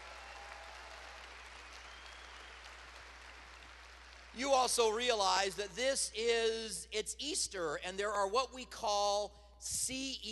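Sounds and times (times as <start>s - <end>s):
audience clapping: 0.0s - 4.6s
speech: 4.4s - 10.3s.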